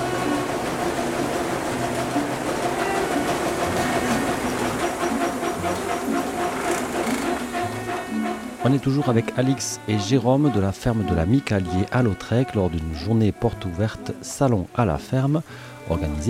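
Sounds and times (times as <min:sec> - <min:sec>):
wheat brush grain-cleaning machine running: 0:00.0 - 0:08.2
speech: 0:08.6 - 0:16.2.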